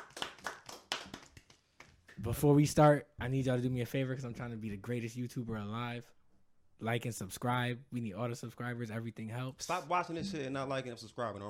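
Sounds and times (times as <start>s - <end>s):
hand clapping: 0.0s - 2.2s
speech: 2.2s - 6.2s, 6.8s - 11.4s.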